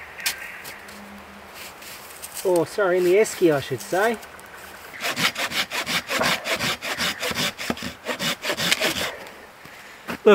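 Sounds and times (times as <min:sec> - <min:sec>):
speech: 0:02.4 - 0:04.4
hand saw cutting through firewood: 0:04.9 - 0:09.4.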